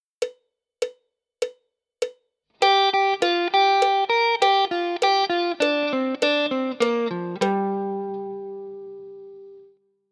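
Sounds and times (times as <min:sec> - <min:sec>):
G minor pentatonic guitar lick: 0:02.6 - 0:09.7.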